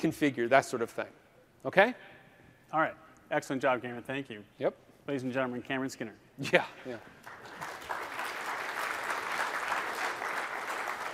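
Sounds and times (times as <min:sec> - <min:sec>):
speech: 0:00.0 - 0:02.1, 0:02.7 - 0:07.2
audience applause: 0:07.2 - 0:11.1.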